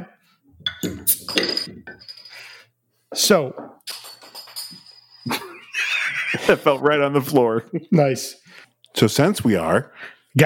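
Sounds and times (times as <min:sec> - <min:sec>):
glass and metal clinking: 0:00.6 - 0:02.6, 0:03.6 - 0:06.4
speech: 0:03.2 - 0:03.7, 0:06.5 - 0:10.4
laughter: 0:05.3 - 0:08.1.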